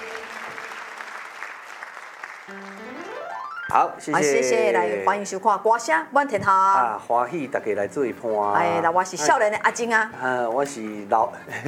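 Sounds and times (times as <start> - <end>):
audience clapping: 0.0 - 3.9
speech: 3.7 - 11.6.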